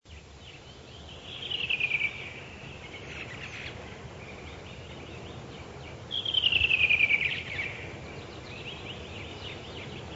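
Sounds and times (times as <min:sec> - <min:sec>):
redwing singing descending trilled phrases: 0:00.1 - 0:10.1.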